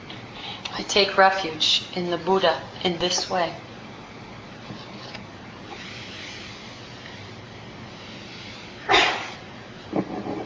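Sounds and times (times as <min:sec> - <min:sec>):
speech: 0:00.8 - 0:03.7
sneeze: 0:08.9 - 0:09.4.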